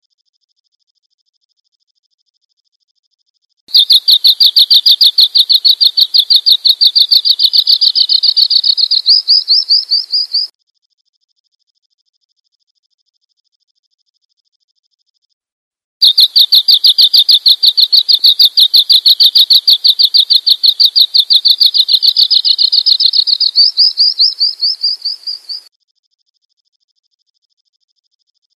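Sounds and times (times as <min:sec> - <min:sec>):
bird chirping: 0:03.7 - 0:10.5, 0:16.0 - 0:25.7.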